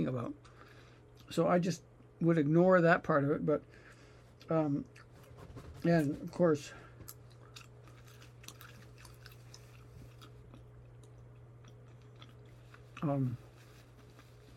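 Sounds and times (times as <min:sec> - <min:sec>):
speech: 0:00.0 - 0:00.5, 0:01.3 - 0:03.8, 0:04.4 - 0:05.0, 0:05.6 - 0:06.8, 0:13.0 - 0:13.4
chewing xylitol gum: 0:07.0 - 0:13.2.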